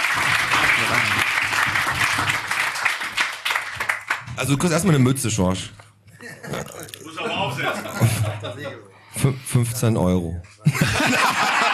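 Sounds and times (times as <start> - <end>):
audience applause: 0.0 - 4.3
speech: 4.4 - 5.8, 8.0 - 11.2
laughter: 6.1 - 8.9, 10.6 - 11.7.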